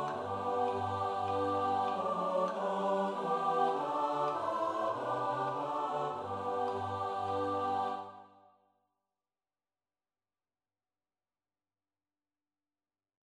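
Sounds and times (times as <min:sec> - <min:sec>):
SATB choir singing: 0:00.0 - 0:08.5.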